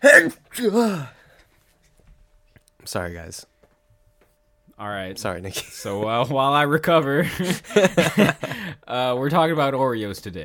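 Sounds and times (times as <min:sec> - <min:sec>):
person sneezing: 0:00.0 - 0:01.2
speech: 0:00.0 - 0:01.2, 0:02.8 - 0:03.5, 0:04.8 - 0:10.4
laughter: 0:07.2 - 0:08.7.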